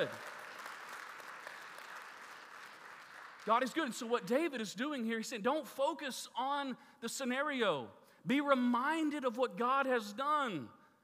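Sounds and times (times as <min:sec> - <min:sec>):
speech: 0:00.0 - 0:00.3, 0:03.4 - 0:10.8
church audience applauding: 0:00.0 - 0:03.8.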